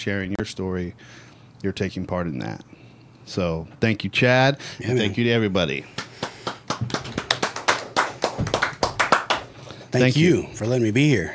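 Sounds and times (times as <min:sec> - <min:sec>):
speech: 0:00.0 - 0:06.0, 0:09.9 - 0:11.3
one person clapping hands: 0:05.9 - 0:09.6.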